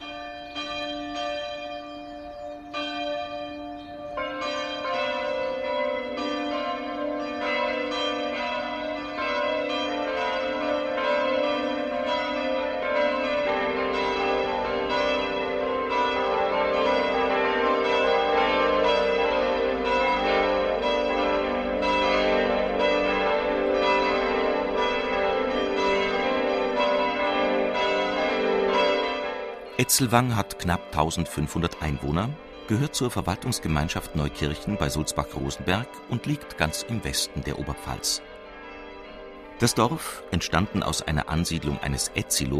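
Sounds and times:
church bells ringing at midday: 0:00.0 - 0:42.5
speech: 0:29.8 - 0:38.3, 0:39.6 - 0:42.5.

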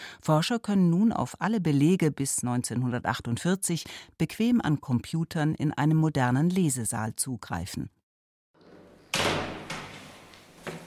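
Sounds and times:
speech: 0:00.2 - 0:08.0
plain metal door unlocked in the Belvedere courtyard of the Vatican archives: 0:08.6 - 0:10.8.

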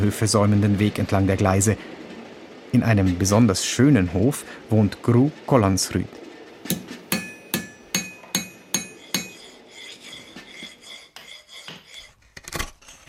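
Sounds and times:
speech: 0:00.0 - 0:02.0, 0:02.7 - 0:06.9
hammer striking silver while forging spoons: 0:06.7 - 0:09.6.

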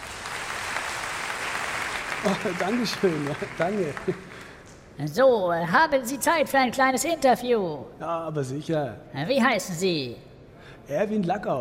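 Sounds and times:
audience applause: 0:00.0 - 0:04.7
speech: 0:02.2 - 0:04.3, 0:05.0 - 0:10.3, 0:10.9 - 0:11.5.

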